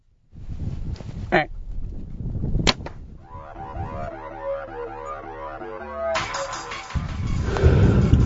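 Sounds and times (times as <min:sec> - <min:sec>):
wind-like noise: 0:00.0 - 0:04.2, 0:07.0 - 0:08.2
arrow shot from a bow: 0:02.6 - 0:03.0.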